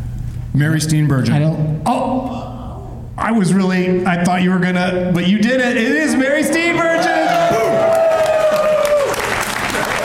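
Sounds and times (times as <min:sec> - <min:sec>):
speech: 0:00.6 - 0:02.5, 0:03.2 - 0:07.6
audience applause: 0:07.0 - 0:10.0.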